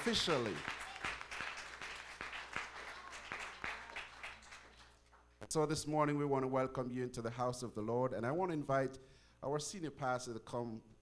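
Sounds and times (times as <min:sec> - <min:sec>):
speech: 0:00.0 - 0:00.8, 0:05.5 - 0:11.0
audience applauding the choir: 0:00.0 - 0:05.0.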